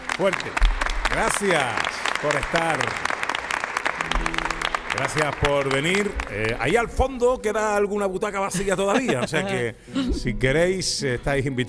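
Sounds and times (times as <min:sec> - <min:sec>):
audience applause: 0:00.0 - 0:06.9
speech: 0:00.2 - 0:03.1, 0:04.0 - 0:11.6
laughter: 0:08.5 - 0:10.3.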